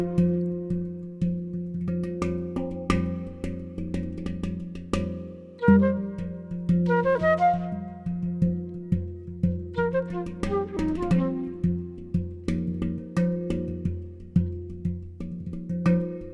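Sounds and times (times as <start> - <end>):
hang drum: 0.0 - 16.3
alto flute: 5.6 - 12.3.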